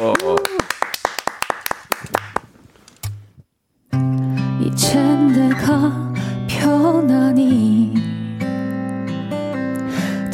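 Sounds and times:
audience clapping: 0:00.0 - 0:02.5
music: 0:03.9 - 0:10.3.

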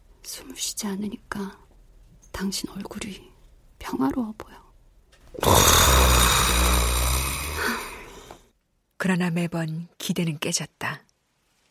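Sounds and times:
speech: 0:00.3 - 0:01.6, 0:02.4 - 0:04.6, 0:09.0 - 0:11.1
loud snoring: 0:05.4 - 0:08.4.

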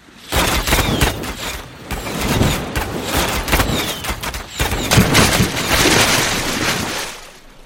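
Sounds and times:
cannon fire in naval battle: 0:00.3 - 0:06.4.

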